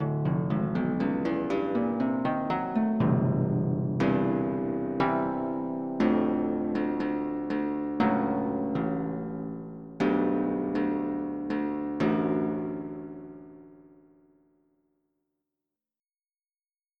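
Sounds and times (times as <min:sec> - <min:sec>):
bright harp: 0:00.0 - 0:13.5.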